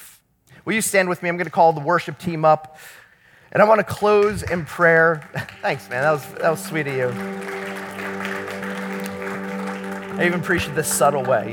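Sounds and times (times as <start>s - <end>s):
speech: 0.7s - 7.5s, 10.2s - 11.5s
church audience clapping after a sermon: 3.6s - 11.5s.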